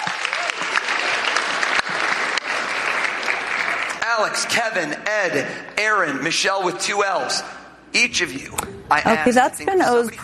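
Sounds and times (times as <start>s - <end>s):
audience applause: 0.0s - 4.5s
speech: 4.2s - 10.2s.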